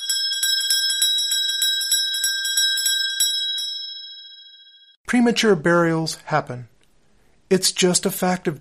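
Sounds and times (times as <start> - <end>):
tiny bell on a gravestone rung from a coffin as a premature burial alert: 0.0 - 5.0
speech: 5.1 - 6.7, 7.5 - 8.5.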